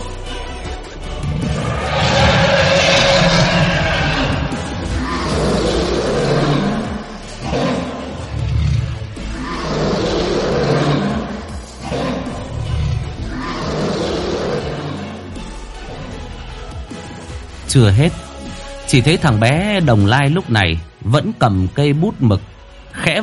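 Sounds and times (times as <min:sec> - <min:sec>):
dragon roar sound effect: 0:01.1 - 0:16.6
speech: 0:17.8 - 0:18.2, 0:18.9 - 0:23.2.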